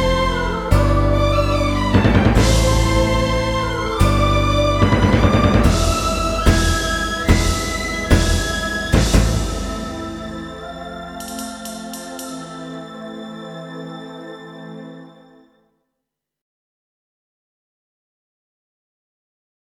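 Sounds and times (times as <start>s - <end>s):
sad song: 0.0s - 15.6s.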